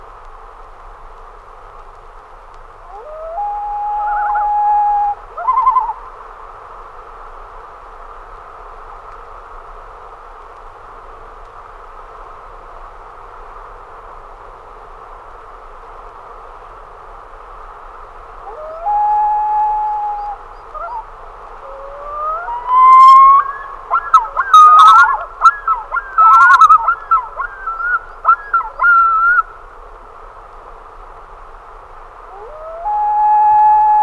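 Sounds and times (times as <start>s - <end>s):
common loon calling with whistles and tremolo: 2.9s - 6.1s, 18.4s - 29.5s, 32.3s - 34.0s.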